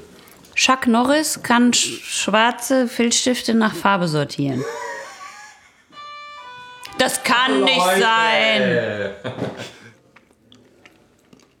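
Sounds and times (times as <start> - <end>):
speech: 0.6 - 4.9, 7.1 - 9.8
laughter: 4.6 - 6.0, 7.0 - 9.8
person chewing and crunching nuts: 10.0 - 11.5.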